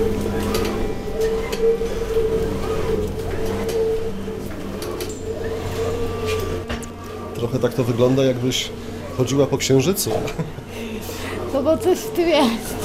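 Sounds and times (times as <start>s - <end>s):
high whine: 0.0s - 7.8s
machine humming: 0.0s - 12.8s
speech: 7.5s - 10.6s, 11.5s - 12.8s.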